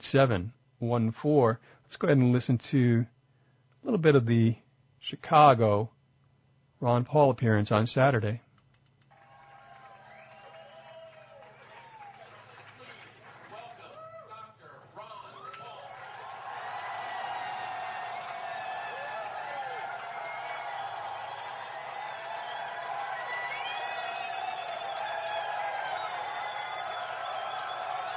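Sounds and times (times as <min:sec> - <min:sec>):
speech: 0:00.0 - 0:03.2, 0:03.8 - 0:06.0, 0:06.8 - 0:08.4
rally crowd cheering: 0:09.1 - 0:28.1.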